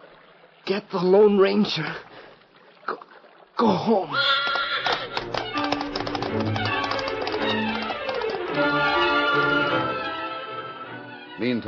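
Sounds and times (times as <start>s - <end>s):
speech: 0.7s - 2.1s, 2.9s - 4.5s, 11.4s - 11.6s
horse galloping in and stopping: 4.3s - 8.6s
steady tonal backdrop: 5.2s - 11.6s.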